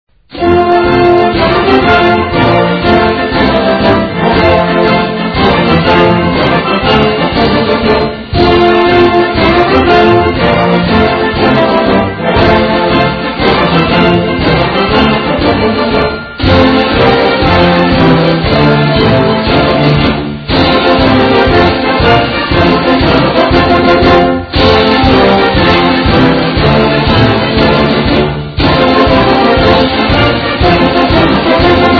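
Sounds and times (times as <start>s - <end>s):
fight song music: 0.2s - 31.9s.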